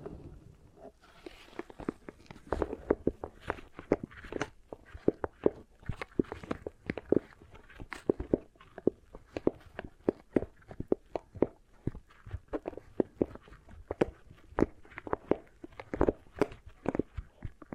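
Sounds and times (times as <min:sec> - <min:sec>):
beeswax pressed and worked crackling and popping: 0:00.0 - 0:17.7.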